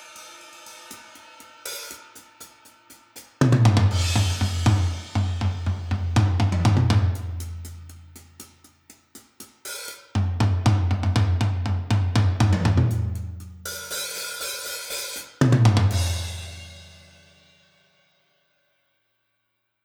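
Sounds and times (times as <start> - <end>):
drum mix without kick or snare: 0.0 - 8.5, 10.2 - 16.8.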